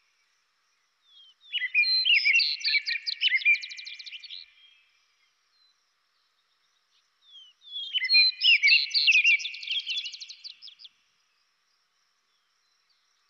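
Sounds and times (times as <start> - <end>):
vesper sparrow singing: 1.1 - 4.7, 7.3 - 10.9
robin singing: 1.1 - 4.9, 6.3 - 11.0.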